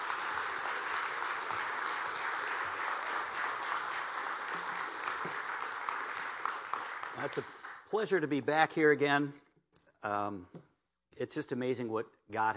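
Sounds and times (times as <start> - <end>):
audience applauding to welcome a guest speaker: 0.0 - 8.1
speech: 7.2 - 9.4, 10.0 - 10.6, 11.2 - 12.5.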